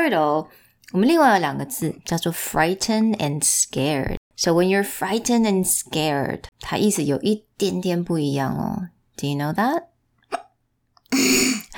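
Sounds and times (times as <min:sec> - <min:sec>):
speech: 0:00.0 - 0:10.4
person hiccuping: 0:10.3 - 0:11.7.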